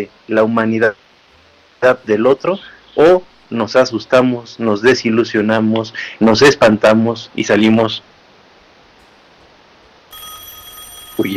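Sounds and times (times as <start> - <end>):
speech: 0.0 - 1.0, 1.8 - 8.1, 11.2 - 11.3
telephone ringing for an incoming call to a radio show: 10.1 - 11.3.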